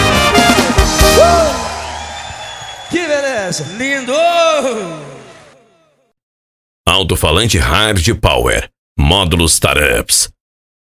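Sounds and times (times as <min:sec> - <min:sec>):
applause: 0:00.0 - 0:05.8
speech: 0:03.2 - 0:05.1, 0:06.9 - 0:10.4.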